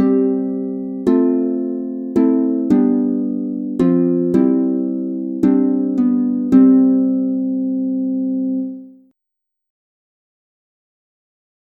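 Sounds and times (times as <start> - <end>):
harp in C major: 0.0 - 9.0.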